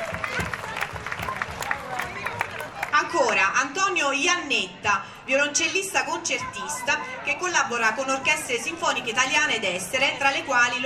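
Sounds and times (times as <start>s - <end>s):
audience applause for a performer at a live event: 0.0s - 3.0s
speech: 3.2s - 10.8s.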